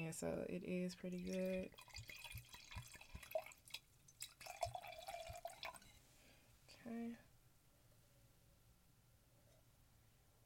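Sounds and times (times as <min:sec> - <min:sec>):
speech: 0:00.0 - 0:02.2, 0:06.8 - 0:07.3
drink being poured into a glass: 0:01.0 - 0:06.0
faint ringing tone: 0:05.6 - 0:06.1.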